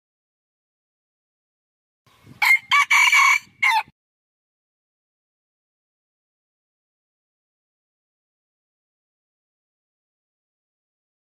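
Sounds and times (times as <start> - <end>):
red junglefowl crow: 2.4 - 3.9.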